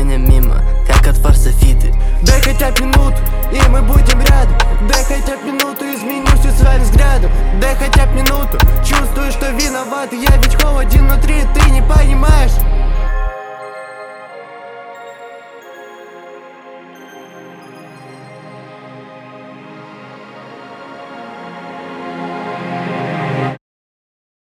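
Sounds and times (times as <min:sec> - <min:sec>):
trap beat: 0:00.0 - 0:13.4.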